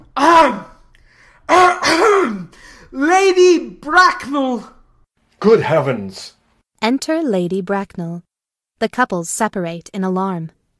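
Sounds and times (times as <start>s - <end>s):
speech: 0.2s - 0.7s, 1.5s - 4.8s, 5.4s - 10.6s
man coughing loudly: 1.5s - 2.5s.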